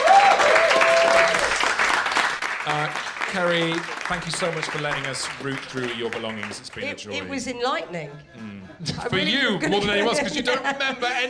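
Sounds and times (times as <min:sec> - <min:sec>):
audience applause: 0:00.0 - 0:07.1
speech: 0:03.3 - 0:11.2
laughter: 0:04.5 - 0:11.2.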